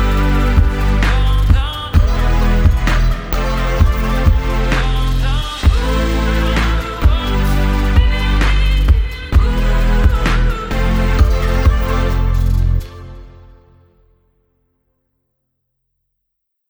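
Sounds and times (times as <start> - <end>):
pop EDM: 0.0 - 13.2.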